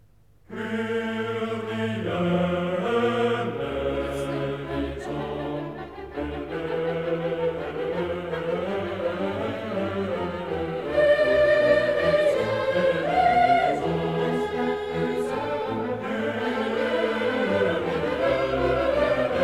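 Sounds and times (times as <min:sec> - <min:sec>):
choir and orchestra requiem: 0:00.5 - 0:19.4.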